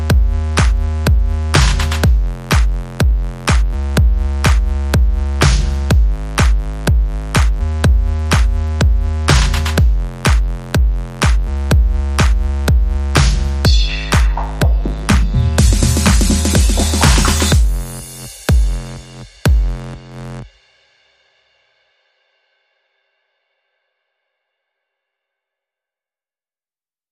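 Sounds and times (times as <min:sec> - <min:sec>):
beat and bass music: 0:00.0 - 0:20.2.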